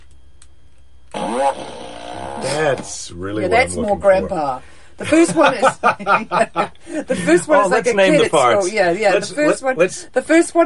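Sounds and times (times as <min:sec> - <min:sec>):
fart machine toot: 0:01.1 - 0:03.0
speech: 0:02.5 - 0:10.6
laughter: 0:05.0 - 0:07.8.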